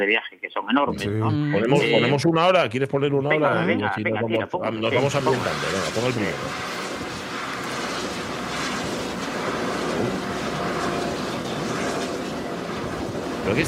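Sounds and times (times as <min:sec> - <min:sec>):
speech: 0:00.0 - 0:06.8, 0:13.5 - 0:13.6
wind turbine generator noise: 0:04.8 - 0:13.6.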